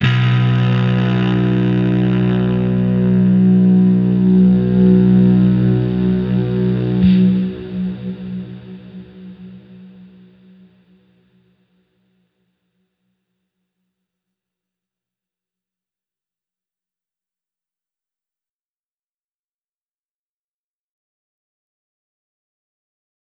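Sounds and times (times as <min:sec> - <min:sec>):
overlay drone: 0:00.0 - 0:11.1.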